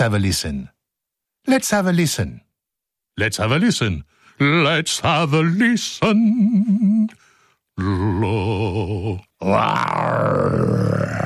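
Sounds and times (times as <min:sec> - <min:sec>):
speech: 0:00.0 - 0:00.8, 0:01.4 - 0:02.4, 0:03.2 - 0:07.2, 0:07.8 - 0:11.2
man's voice imitating a lion's roar: 0:07.8 - 0:11.2.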